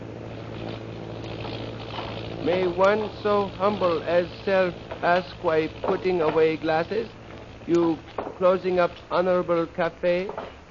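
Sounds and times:
airplane engine drone: 0.0s - 10.6s
speech: 2.4s - 10.6s.

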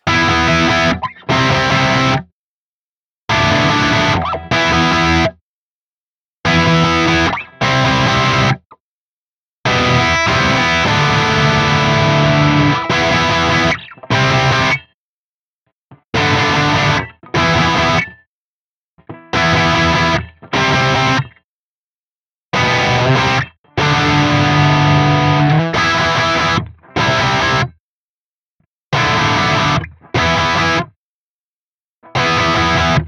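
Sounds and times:
distorted electric guitar through a miked amp cabinet: 0.0s - 2.2s, 3.3s - 5.3s, 6.5s - 8.6s, 9.7s - 14.8s, 16.2s - 18.2s, 19.1s - 21.3s, 22.6s - 27.7s, 29.0s - 30.9s, 32.1s - 33.0s.

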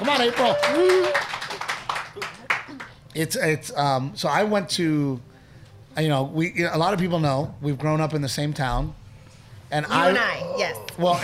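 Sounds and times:
audience applause: 0.0s - 3.0s
speech: 0.1s - 1.3s, 3.2s - 5.3s, 6.0s - 9.0s, 9.7s - 11.2s.

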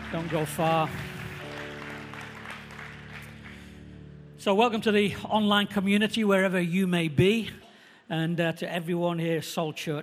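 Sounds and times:
church congregation applauding the worship team: 0.0s - 4.0s
speech: 0.1s - 1.1s, 4.4s - 10.0s.

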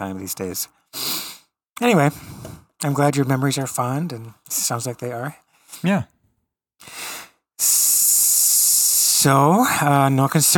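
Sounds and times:
speech: 0.0s - 1.1s, 1.8s - 6.2s, 7.6s - 8.0s, 9.2s - 10.5s
person hissing like a snake: 1.0s - 1.5s, 6.8s - 9.2s.

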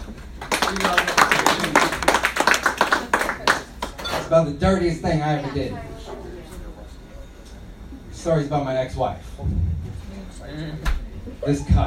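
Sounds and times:
audience applause: 0.4s - 4.0s
speech: 0.7s - 1.2s, 4.3s - 5.9s, 8.2s - 9.7s, 10.5s - 11.8s.

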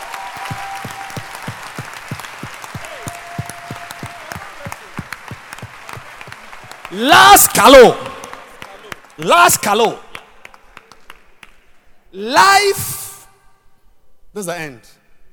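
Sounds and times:
crowd cheering and shouting: 0.0s - 8.2s
audience clapping in rhythmic unison: 0.0s - 11.9s
speech: 6.9s - 8.1s, 9.2s - 10.0s, 12.2s - 12.9s, 14.4s - 14.9s.

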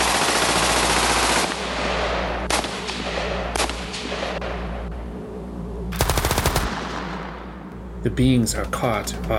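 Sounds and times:
machine gun fire from a unit of soldiers: 0.0s - 4.4s, 6.0s - 7.4s
speech: 8.0s - 9.3s.

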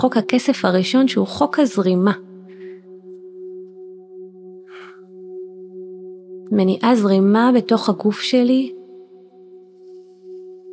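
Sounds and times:
speech: 0.0s - 2.3s, 6.5s - 8.8s
low humming drone: 0.2s - 10.7s
woman breathing in a guided breathing exercise: 2.3s - 3.7s, 4.5s - 5.6s.

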